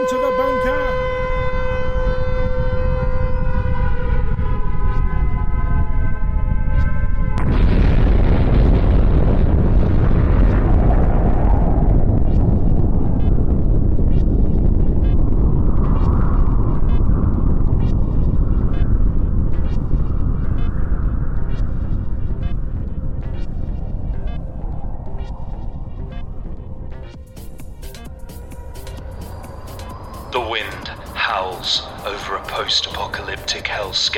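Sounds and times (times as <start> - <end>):
four-minute warning air raid siren: 0.0 - 34.1
continuous heavy roaring rumble: 1.0 - 34.0
sudden loud blast: 7.4 - 13.5, 28.8 - 34.1.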